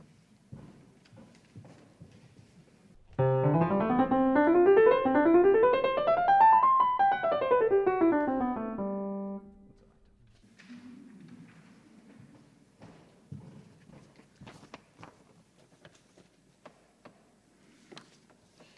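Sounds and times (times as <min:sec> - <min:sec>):
ascending scales in C major: 0:03.1 - 0:09.7.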